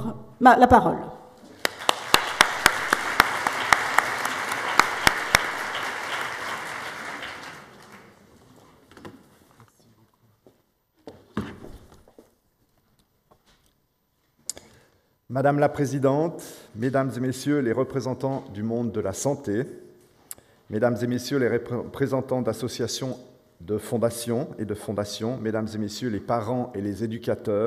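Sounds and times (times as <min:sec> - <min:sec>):
speech: 0:00.4 - 0:01.1, 0:15.4 - 0:19.9, 0:20.7 - 0:27.6
audience applause: 0:01.5 - 0:08.5.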